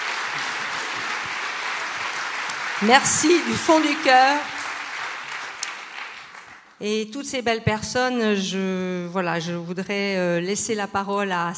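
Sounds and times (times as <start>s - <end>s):
audience applause: 0.0s - 6.8s
speech: 2.8s - 4.6s, 6.8s - 11.5s.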